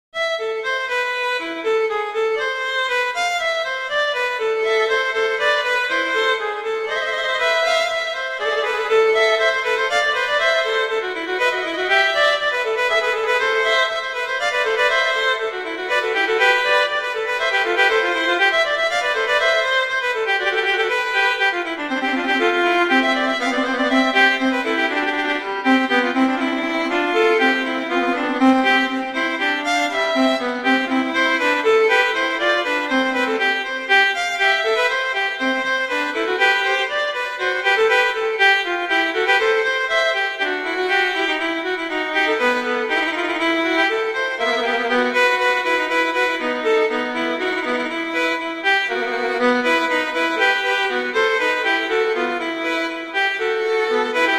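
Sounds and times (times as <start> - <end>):
viola and cello playing vivace moderato: 0.2 - 54.3.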